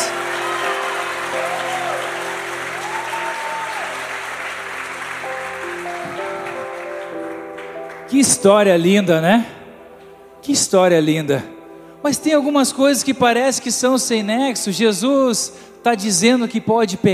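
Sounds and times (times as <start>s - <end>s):
audience applause: 0.0s - 8.1s
speech: 8.1s - 9.6s, 10.4s - 17.1s.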